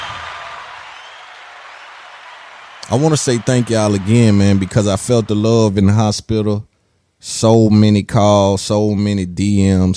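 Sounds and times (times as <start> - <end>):
applause: 0.0 - 5.5
speech: 2.9 - 9.9.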